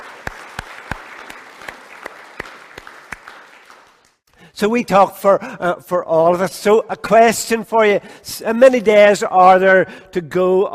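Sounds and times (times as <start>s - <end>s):
audience applause: 0.0s - 4.2s
speech: 4.6s - 10.7s.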